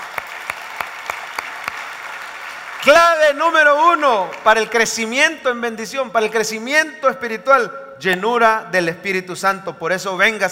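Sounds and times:
audience applause: 0.0s - 4.7s
sharp evenly spaced claps: 0.0s - 5.0s
speech: 2.8s - 10.5s.

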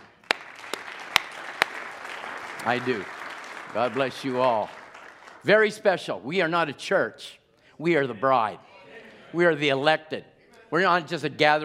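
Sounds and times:
audience applause: 0.0s - 5.6s
speech: 2.6s - 4.8s, 5.4s - 8.7s, 9.3s - 11.6s.

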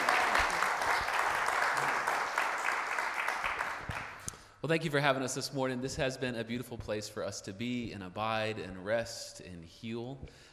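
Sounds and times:
crowd applauding: 0.0s - 4.3s
speech: 4.6s - 10.5s.

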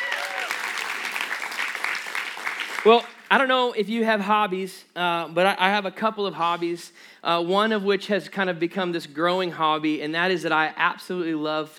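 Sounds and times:
audience hand clap applause: 0.0s - 3.4s
speech: 2.8s - 11.7s.

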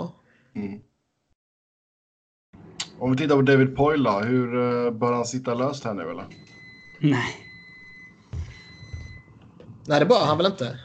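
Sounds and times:
speech: 0.6s - 0.9s, 3.0s - 7.4s, 9.9s - 10.8s
microwave oven beeping: 5.1s - 10.4s
dull low thumps: 7.9s - 9.8s.

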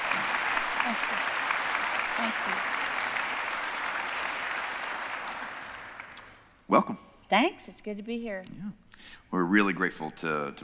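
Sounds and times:
audience applause welcoming guests at JCBC: 0.0s - 6.6s
speech: 0.8s - 1.4s, 2.2s - 2.8s, 6.7s - 10.6s.

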